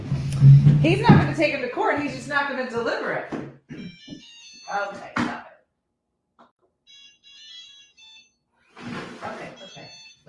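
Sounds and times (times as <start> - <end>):
speech: 0.4 - 3.5, 4.7 - 5.3
electronic alarm beeping: 3.8 - 5.0, 6.9 - 8.4, 9.5 - 10.2.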